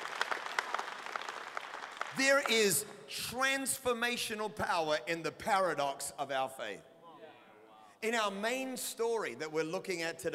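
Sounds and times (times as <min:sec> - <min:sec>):
audience clapping hands: 0:00.0 - 0:02.9
speech: 0:02.2 - 0:06.9, 0:08.0 - 0:10.3.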